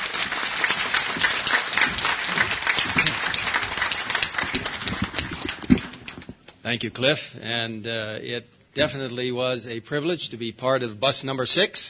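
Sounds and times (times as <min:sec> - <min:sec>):
audience applause: 0:00.0 - 0:06.4
speech: 0:06.7 - 0:11.8.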